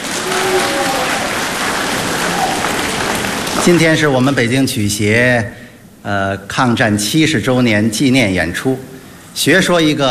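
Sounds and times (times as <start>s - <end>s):
audience applause: 0.0s - 4.0s
speech: 3.6s - 10.0s.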